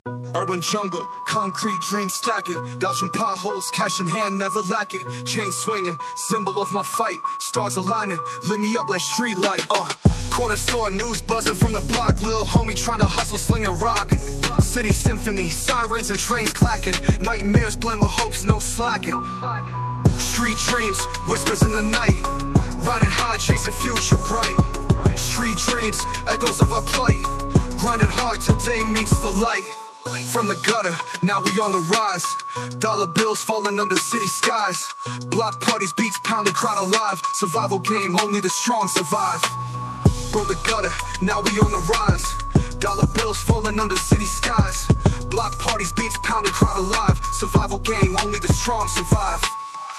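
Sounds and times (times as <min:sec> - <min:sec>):
hip hop vocals: 0:00.1 - 0:49.9.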